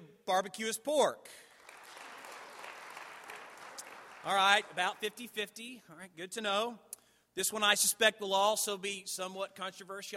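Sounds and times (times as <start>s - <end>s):
speech: 0.3s - 1.5s, 4.2s - 10.1s
audience applause: 1.6s - 5.2s.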